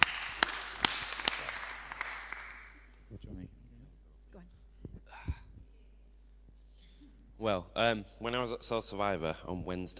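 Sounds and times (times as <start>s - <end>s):
audience applause: 0.0s - 2.8s
speech: 7.4s - 9.9s.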